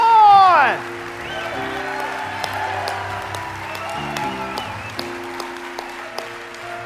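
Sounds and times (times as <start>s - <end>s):
audience cheering: 0.0s - 6.8s.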